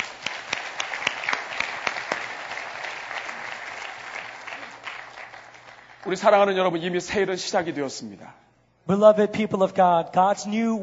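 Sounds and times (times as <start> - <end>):
audience applauding: 0.0 - 6.4
speech: 6.0 - 10.8.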